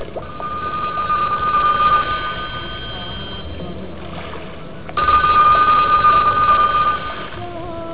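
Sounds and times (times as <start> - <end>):
telephone: 0.3 - 3.4, 5.0 - 7.5.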